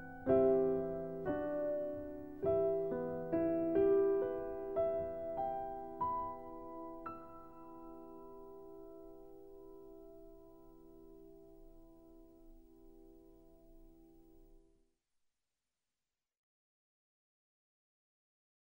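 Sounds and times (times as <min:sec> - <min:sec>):
solo piano: 0:00.0 - 0:14.7.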